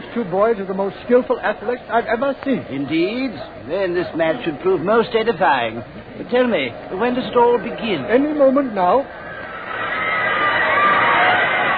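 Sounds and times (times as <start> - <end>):
speech: 0.2 - 9.2
crowd at a match cheering the Yale team: 9.1 - 11.7.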